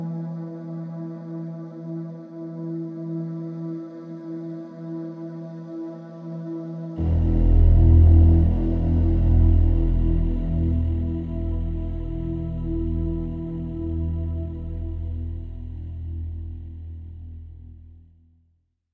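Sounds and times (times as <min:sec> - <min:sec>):
synth pads: 0:07.0 - 0:18.0.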